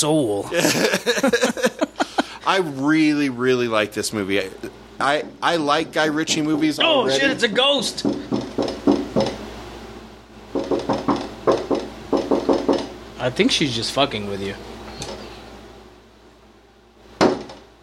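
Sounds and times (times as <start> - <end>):
speech: 0.0 - 1.7, 2.4 - 8.3, 13.2 - 14.7
laughter: 0.5 - 2.5
banging on a window: 8.0 - 9.4, 10.6 - 13.0, 17.2 - 17.7.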